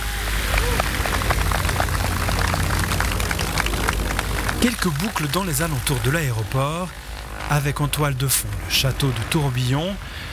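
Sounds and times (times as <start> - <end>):
applause during airplane takeoff: 0.0 - 6.5
speech: 4.6 - 10.3.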